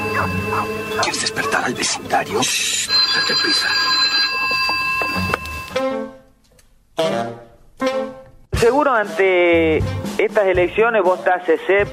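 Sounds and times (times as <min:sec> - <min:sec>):
telephone ringing with a bright electronic tone: 0:00.0 - 0:05.8
speech: 0:00.2 - 0:04.2, 0:07.0 - 0:07.4, 0:08.6 - 0:11.9.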